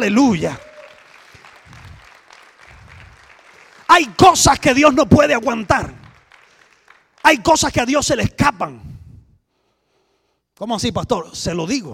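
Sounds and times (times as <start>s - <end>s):
speech: 0.0s - 0.7s, 3.9s - 6.0s, 7.2s - 8.9s, 10.6s - 11.9s
audience applause: 0.4s - 7.5s.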